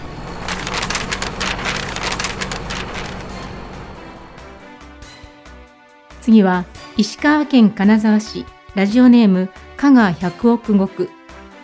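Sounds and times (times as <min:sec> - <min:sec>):
paper shredder shredding a postcard: 0:00.0 - 0:04.7
speech: 0:06.3 - 0:11.2.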